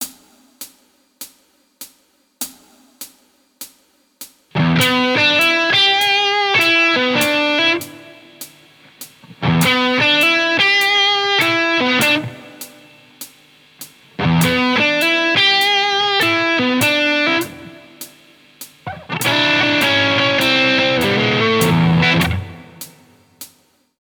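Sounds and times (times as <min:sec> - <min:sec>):
guitar licks: 0:04.6 - 0:12.9, 0:14.0 - 0:18.1, 0:18.8 - 0:23.0.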